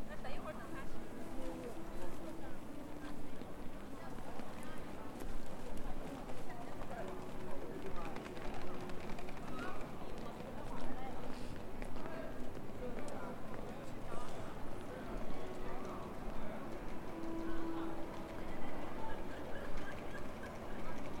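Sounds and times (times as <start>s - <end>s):
crowd murmur on Zhongjie pedestrian street in Shenyang: 0.0s - 21.1s.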